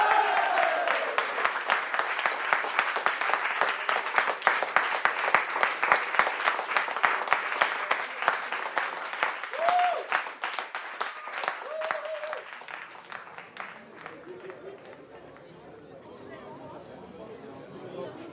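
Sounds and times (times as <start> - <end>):
group applause: 0.0 - 15.6.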